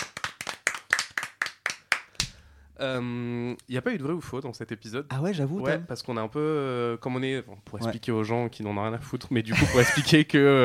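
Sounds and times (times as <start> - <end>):
hands clapping: 0.0 - 2.4
speech: 2.8 - 10.6.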